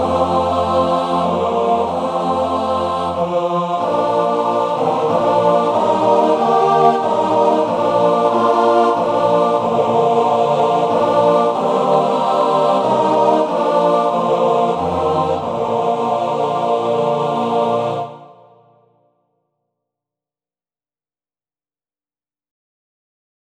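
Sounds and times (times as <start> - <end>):
male choir singing in four parts: 0.0 - 18.7.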